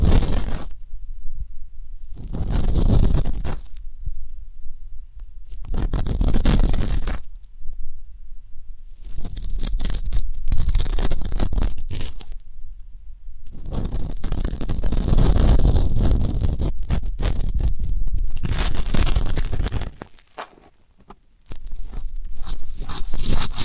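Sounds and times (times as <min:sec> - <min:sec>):
ear canal cleaning rubbing and scraping: 0:02.1 - 0:03.8, 0:05.5 - 0:07.4, 0:09.0 - 0:12.4, 0:13.5 - 0:23.6.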